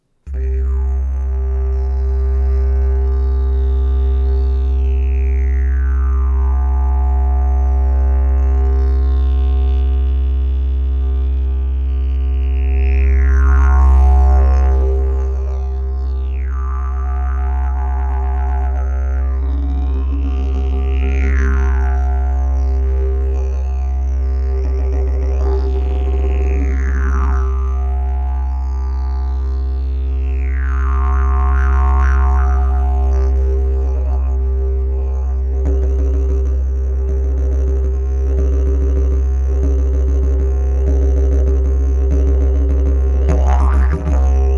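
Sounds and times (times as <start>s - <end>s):
didgeridoo: 0.2s - 44.5s.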